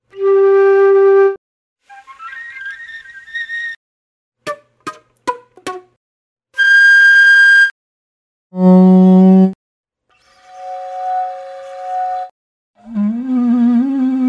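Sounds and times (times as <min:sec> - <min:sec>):
flute: 0:00.1 - 0:03.8, 0:06.6 - 0:07.8, 0:10.2 - 0:14.2.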